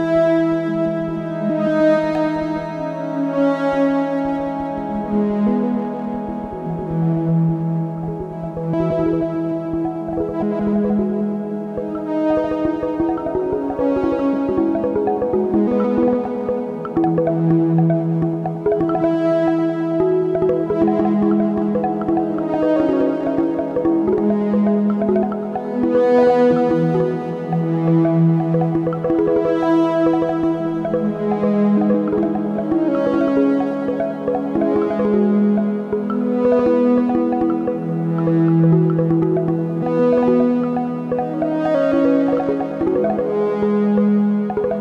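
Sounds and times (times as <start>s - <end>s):
neptunian marimba: 0.2s - 44.7s.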